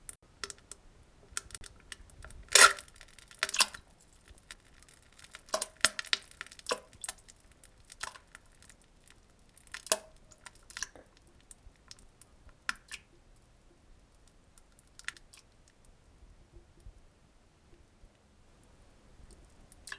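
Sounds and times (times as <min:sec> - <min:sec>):
wet squishing: 0:01.4 - 0:12.0.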